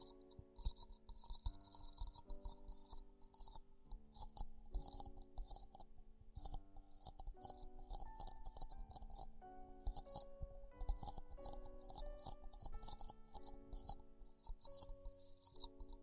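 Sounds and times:
ear exploration crackling and tapping: 0.0s - 16.0s.

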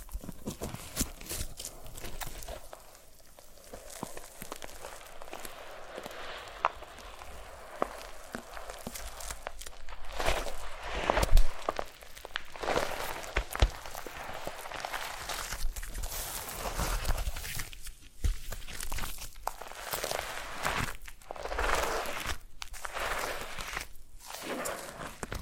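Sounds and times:
foam rubbed and squeezed in a massage: 0.0s - 17.4s, 19.6s - 25.4s.

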